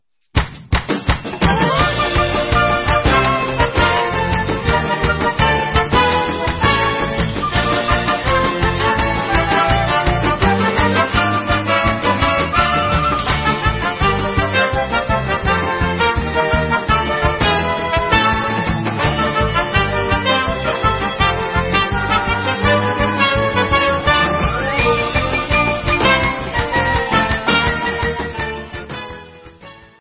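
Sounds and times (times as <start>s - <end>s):
instrumental music: 0.4s - 29.9s.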